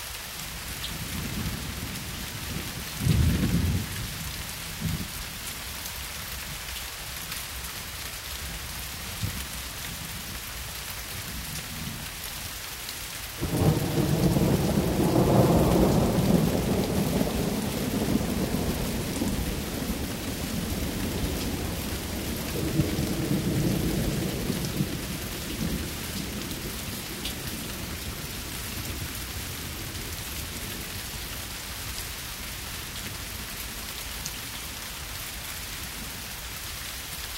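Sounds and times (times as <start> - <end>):
thunderstorm: 1.0 - 5.1, 13.4 - 30.8.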